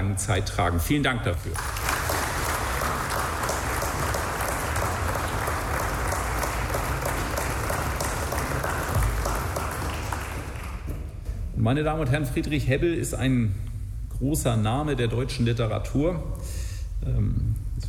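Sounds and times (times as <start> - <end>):
speech: 0.2 - 1.9, 11.6 - 17.8
audience applause: 1.6 - 11.1.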